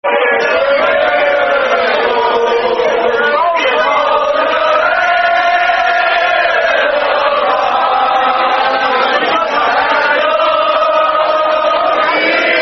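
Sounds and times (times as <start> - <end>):
football crowd chanting: 0.0 - 12.6.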